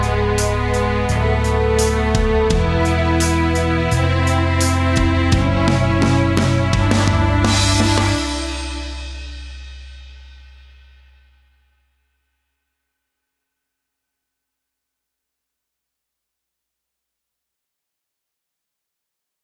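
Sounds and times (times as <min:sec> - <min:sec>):
karaoke singing: 0:00.0 - 0:09.1.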